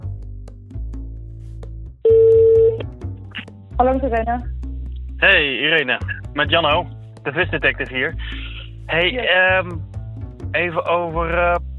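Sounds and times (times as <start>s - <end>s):
telephone dialing tones: 2.1s - 2.8s
speech: 3.8s - 4.6s, 5.2s - 8.3s, 8.9s - 9.9s, 10.5s - 11.7s.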